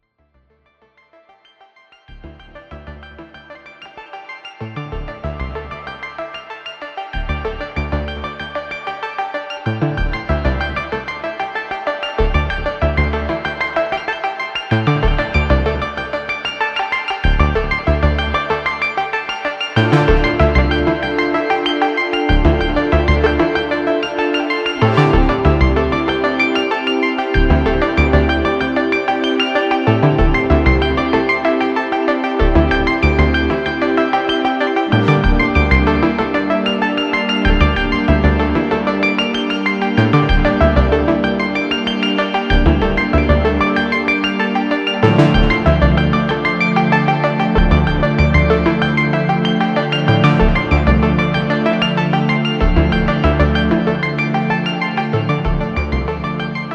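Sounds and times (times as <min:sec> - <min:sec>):
synth arpeggiator scan: 0:01.6 - 0:56.7.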